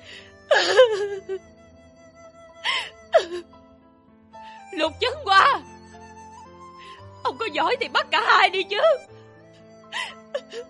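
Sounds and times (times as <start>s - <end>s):
woman sobbing with a cracking voice: 0.0s - 1.6s, 2.6s - 3.6s, 9.8s - 10.6s
speech: 0.7s - 1.6s, 4.8s - 5.7s, 7.4s - 9.2s.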